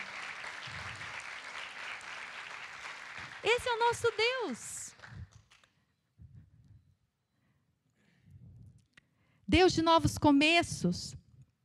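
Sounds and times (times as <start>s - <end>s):
audience applauding: 0.0s - 5.7s
speech: 3.4s - 4.7s, 9.6s - 11.2s.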